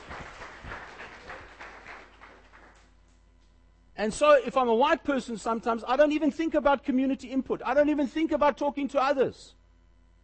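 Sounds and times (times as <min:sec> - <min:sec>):
audience clapping: 0:00.0 - 0:03.2
speech: 0:04.0 - 0:09.6.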